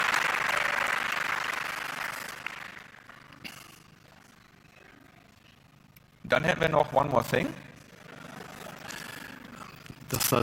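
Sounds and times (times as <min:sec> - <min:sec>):
audience applause: 0:00.0 - 0:03.4
speech: 0:06.3 - 0:07.7, 0:10.2 - 0:10.4.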